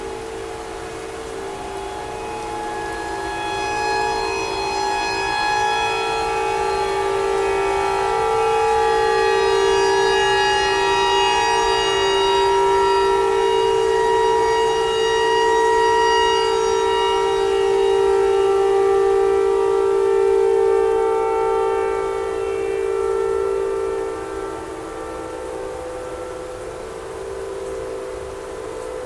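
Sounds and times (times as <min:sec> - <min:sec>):
tornado siren wailing: 0:00.0 - 0:29.0.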